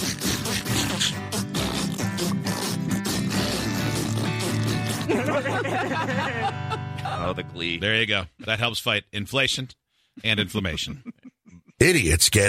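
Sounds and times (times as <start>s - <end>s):
fart noises: 0.0s - 5.4s
laughter: 4.9s - 7.5s, 10.4s - 12.0s
speech: 5.4s - 6.6s, 7.2s - 11.2s, 11.8s - 12.4s.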